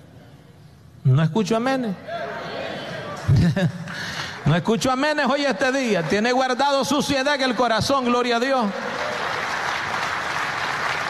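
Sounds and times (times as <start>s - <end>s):
speech: 1.0s - 2.3s, 3.4s - 8.9s
laughter: 2.2s - 4.2s
audience clapping hands: 3.9s - 11.0s.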